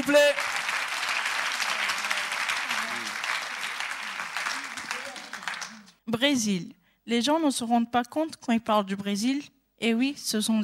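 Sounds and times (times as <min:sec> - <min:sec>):
audience applause: 0:00.0 - 0:06.0
speech: 0:06.1 - 0:10.6.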